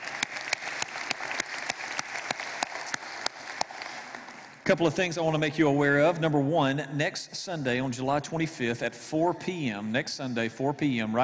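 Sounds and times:
congregation applauding in a worship center: 0:00.0 - 0:04.7
speech: 0:04.7 - 0:11.2.

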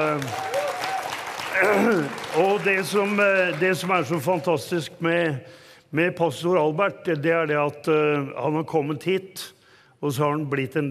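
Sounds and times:
speech: 0:00.0 - 0:00.5, 0:01.6 - 0:10.8
crowd clapping: 0:00.0 - 0:04.8.

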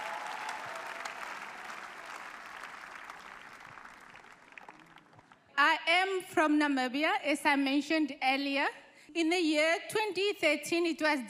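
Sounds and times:
large crowd applause: 0:00.0 - 0:05.5
speech: 0:05.6 - 0:11.2.

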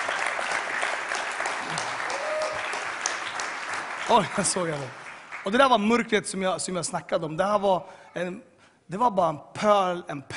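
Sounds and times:
audience applause: 0:00.0 - 0:05.7
speech: 0:04.1 - 0:10.3.

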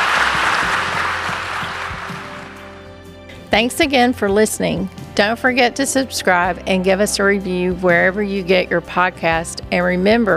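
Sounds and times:
audience applause for panel: 0:00.0 - 0:02.8
speech: 0:03.5 - 0:10.3.

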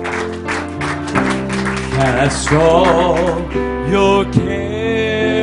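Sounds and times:
audience clapping hands: 0:00.0 - 0:03.7
speech: 0:02.2 - 0:05.3.

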